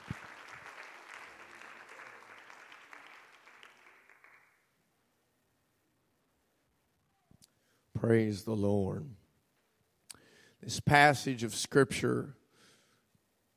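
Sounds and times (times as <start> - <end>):
crowd applause: 0.0 - 4.6
speech: 8.0 - 9.2, 10.6 - 12.4.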